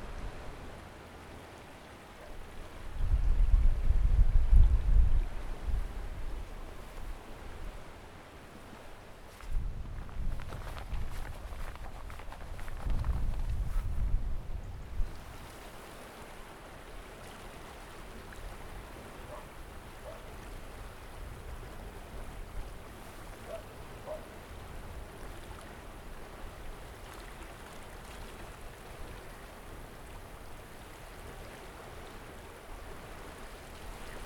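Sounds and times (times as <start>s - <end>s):
river: 0.0s - 34.2s.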